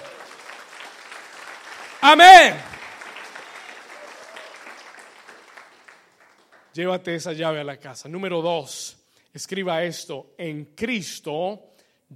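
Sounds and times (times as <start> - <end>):
audience applause: 0.0 - 6.7
speech: 2.0 - 2.7, 6.8 - 12.1.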